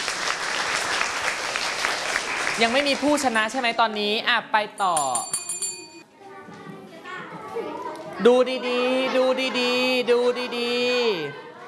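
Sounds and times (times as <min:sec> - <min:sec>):
students in a classroom quiz game clapping: 0:00.0 - 0:03.5
speech: 0:02.6 - 0:05.4, 0:07.6 - 0:11.4.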